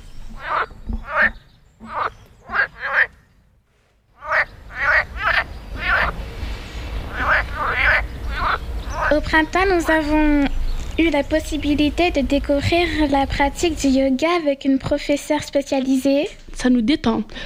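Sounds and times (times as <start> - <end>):
frogs croaking in mating season: 0.0 - 3.3, 4.1 - 11.9
low outdoor rumble: 0.0 - 17.4
speech: 9.3 - 17.4.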